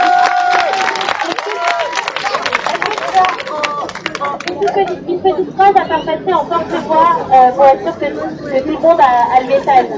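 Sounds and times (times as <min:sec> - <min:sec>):
scattered cheers and overlapping shouting voices: 0:00.0 - 0:02.6
crowd applauding: 0:00.0 - 0:04.8
speech: 0:05.3 - 0:09.9.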